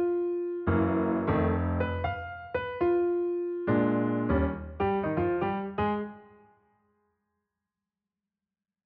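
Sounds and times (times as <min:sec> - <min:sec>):
mellow piano: 0:00.0 - 0:06.7.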